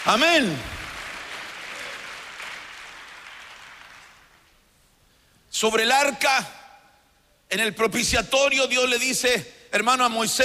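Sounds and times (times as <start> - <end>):
audience clapping hands: 0.0 - 4.6
speech: 0.1 - 0.8, 5.6 - 6.6, 7.5 - 10.4.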